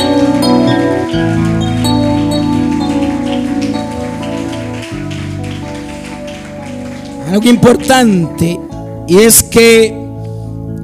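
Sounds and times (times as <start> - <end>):
audience applauding: 0.0 - 8.4
speech: 7.4 - 10.0.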